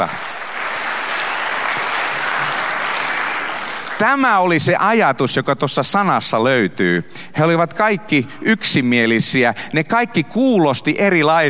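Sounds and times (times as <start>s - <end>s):
speech: 0.0s - 0.2s, 4.0s - 11.4s
audience applause: 0.0s - 4.5s.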